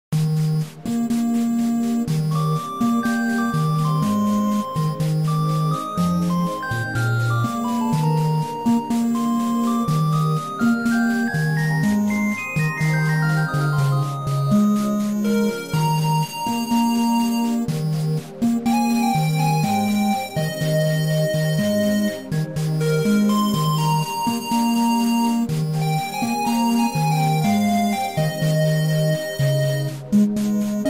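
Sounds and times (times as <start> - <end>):
8-bit theme music: 0.2 - 30.8.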